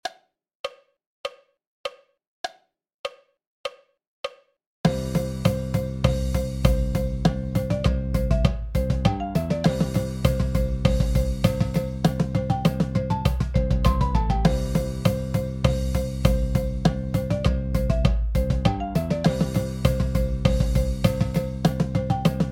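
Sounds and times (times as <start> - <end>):
marching percussion paradiddle breakdown: 4.9 - 22.5.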